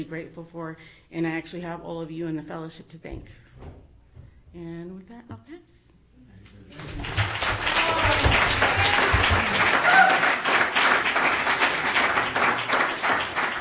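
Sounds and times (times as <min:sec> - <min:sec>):
speech: 0:00.0 - 0:03.9, 0:04.5 - 0:05.8
audience applause: 0:06.7 - 0:13.5.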